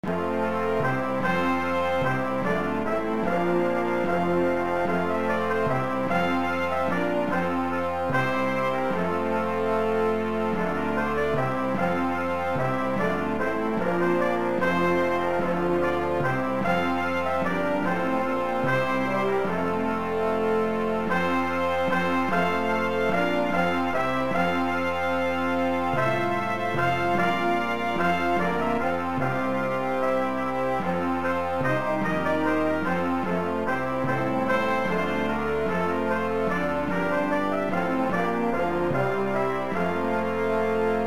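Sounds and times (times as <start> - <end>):
brass playing a hymn: 0.0 - 41.0.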